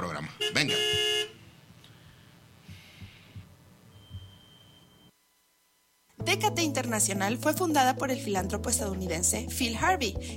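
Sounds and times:
small van honking its horn: 0:00.4 - 0:01.4
soft low thumps: 0:02.6 - 0:04.4
speech: 0:06.4 - 0:10.3.

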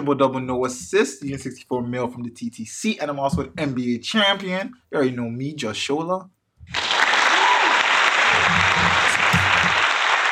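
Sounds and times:
speech: 0:00.0 - 0:06.8
soundboard clapping applause sound effect: 0:06.8 - 0:10.3.

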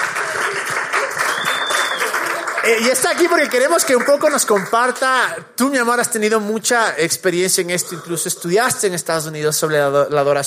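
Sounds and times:
audience applause: 0:00.0 - 0:05.3
speech: 0:02.6 - 0:10.4.

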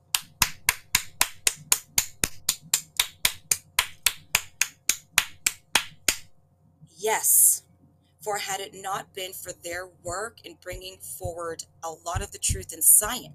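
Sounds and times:
applause of sharp crisp claps: 0:00.1 - 0:06.3
speech: 0:07.0 - 0:07.4, 0:08.2 - 0:13.3.

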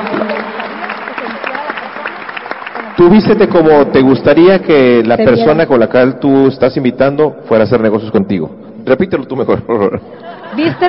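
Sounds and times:
audience applause: 0:00.0 - 0:05.1
speech: 0:03.0 - 0:10.8
laughter: 0:09.8 - 0:10.8.

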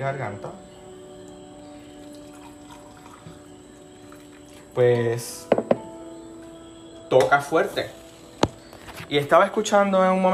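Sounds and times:
speech: 0:00.0 - 0:00.6, 0:04.8 - 0:05.6, 0:07.1 - 0:08.0, 0:09.1 - 0:10.3
water pouring to make tea: 0:02.0 - 0:04.8.

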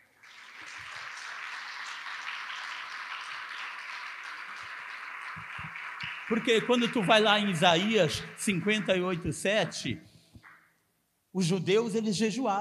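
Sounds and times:
audience applause: 0:00.0 - 0:09.9
speech: 0:06.3 - 0:10.1, 0:11.4 - 0:12.5.

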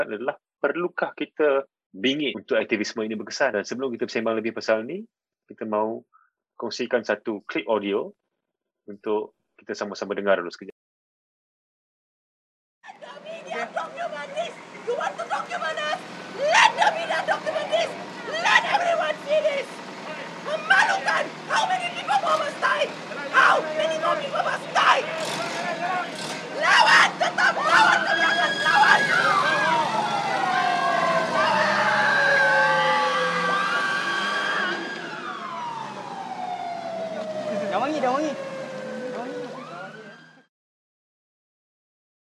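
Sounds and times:
speech: 0:00.0 - 0:08.2, 0:08.9 - 0:10.7
sirens: 0:12.9 - 0:40.5.

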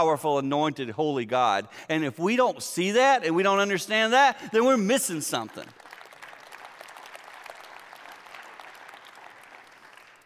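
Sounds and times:
speech: 0:00.0 - 0:05.8
half-hearted applause from an audience: 0:05.5 - 0:10.2.

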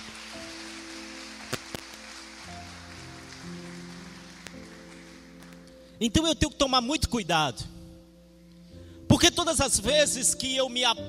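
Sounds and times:
audience applause: 0:00.0 - 0:05.7
low keyboard chords: 0:00.0 - 0:11.0
speech: 0:06.0 - 0:07.7, 0:09.3 - 0:11.0.

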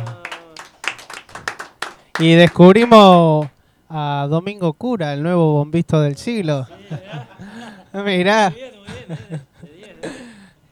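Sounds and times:
laughter: 0:00.0 - 0:01.3, 0:06.6 - 0:10.4
hands clapping: 0:00.0 - 0:03.6
speech: 0:02.2 - 0:10.7.

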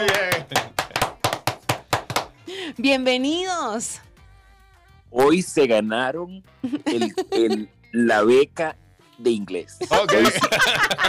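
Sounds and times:
laughter: 0:00.0 - 0:01.0, 0:06.6 - 0:07.7, 0:09.8 - 0:11.0
hand claps: 0:00.0 - 0:02.4
speech: 0:02.8 - 0:04.1, 0:05.1 - 0:11.0.

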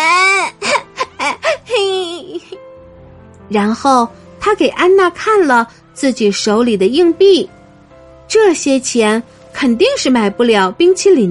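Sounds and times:
child sobbing: 0:00.0 - 0:02.6
speech: 0:03.5 - 0:07.6, 0:08.3 - 0:11.2.

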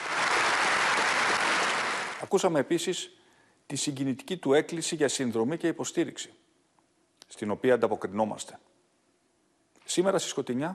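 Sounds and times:
applause from a large assembly in parliament: 0:00.0 - 0:02.3
speech: 0:02.3 - 0:06.4, 0:07.3 - 0:08.7, 0:09.9 - 0:10.7.

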